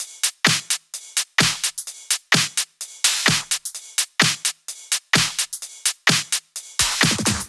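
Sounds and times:
drum kit at 128 BPM: 0.0 - 7.4.

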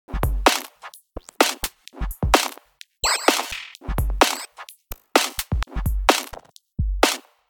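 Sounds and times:
house music loops: 0.1 - 7.2.

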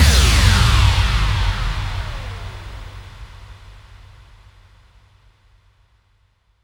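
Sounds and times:
bass drum FX kicks: 0.0 - 4.4.

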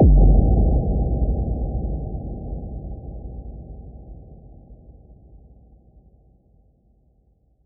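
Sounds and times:
bass drum kick with reverb: 0.0 - 1.8.

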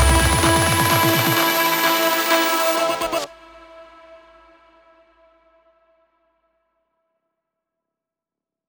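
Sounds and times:
spooky melody fill at 128 BPM: 0.0 - 3.3.

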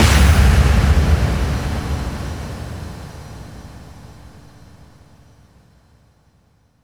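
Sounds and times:
bass drum FX kicks: 0.0 - 2.8.

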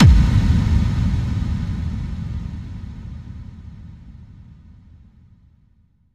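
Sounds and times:
bass drum FX kicks: 0.0 - 2.8.

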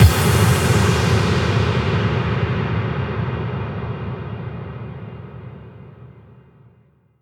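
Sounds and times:
impact: 0.0 - 4.4.

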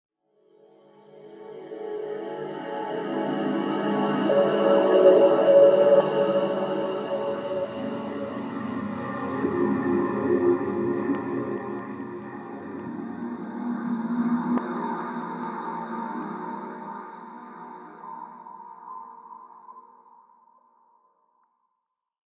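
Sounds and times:
synth pad: 0.6 - 18.4.

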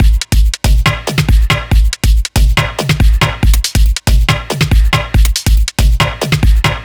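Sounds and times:
dubstep drum loop: 0.0 - 6.8.

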